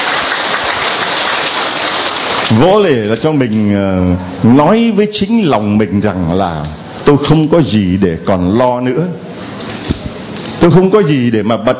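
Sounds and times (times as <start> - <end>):
crowd clapping: 0.0 - 3.2
speech: 2.5 - 9.2, 10.6 - 11.7.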